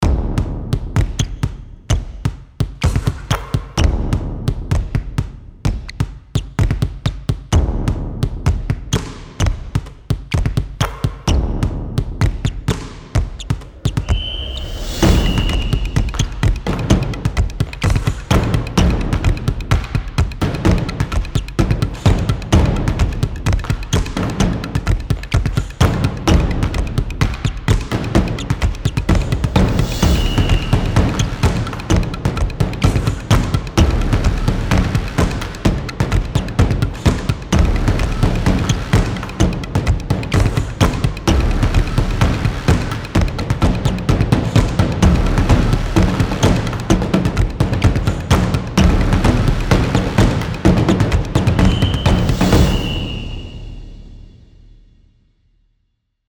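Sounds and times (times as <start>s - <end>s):
drums playing on a court: 0.0s - 54.3s.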